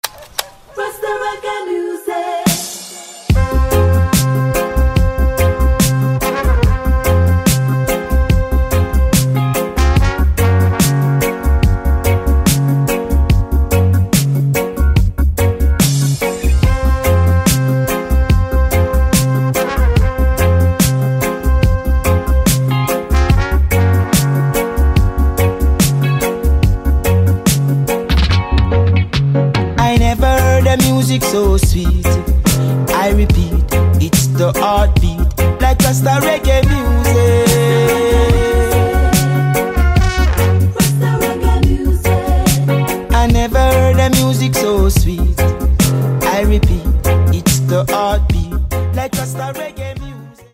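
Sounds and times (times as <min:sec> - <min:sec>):
rasta reggae music: 0:00.0 - 0:50.5.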